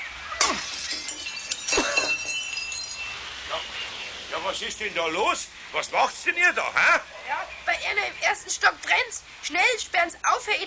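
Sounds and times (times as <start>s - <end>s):
workshop window glass smashed by a thrown paving stone: 0.4s - 3.6s
glass shards tinkling: 0.4s - 3.8s
speech: 4.5s - 10.6s.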